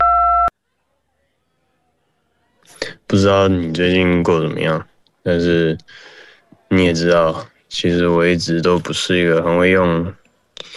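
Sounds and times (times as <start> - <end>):
voicemail beep before leaving a message: 0.0 - 0.5
speech: 3.1 - 10.7.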